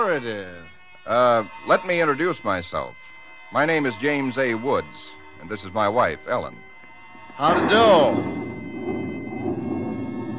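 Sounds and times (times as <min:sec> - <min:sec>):
speech: 0:00.0 - 0:06.7, 0:07.4 - 0:08.5
thunder rumbling: 0:07.4 - 0:10.3.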